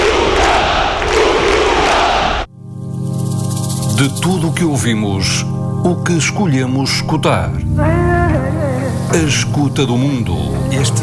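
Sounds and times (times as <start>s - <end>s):
large crowd shouting and roaring: 0.0s - 2.5s
sustained soft musical tone: 3.6s - 11.0s
speech: 4.0s - 8.4s, 9.1s - 11.0s.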